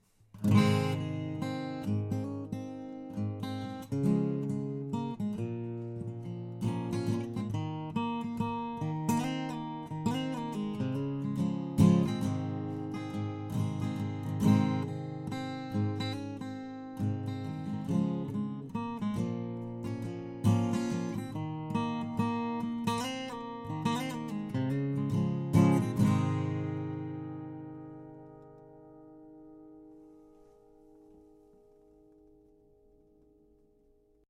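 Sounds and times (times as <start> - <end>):
guitar strumming: 0.3 - 34.0.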